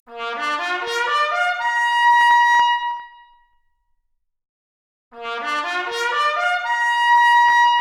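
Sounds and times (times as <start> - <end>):
trumpet arpeggio: 0.2 - 1.9, 5.2 - 7.7.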